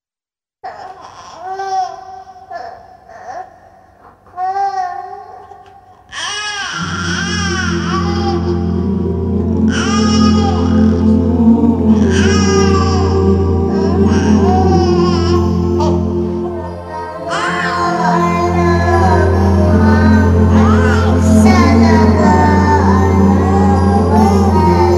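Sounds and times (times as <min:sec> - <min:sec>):
naat devotional singing: 0:06.7 - 0:24.9.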